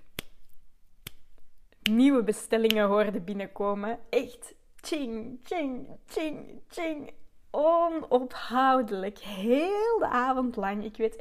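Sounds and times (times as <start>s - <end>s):
finger snaps: 0.0s - 2.0s, 2.6s - 2.9s
speech: 1.9s - 11.1s.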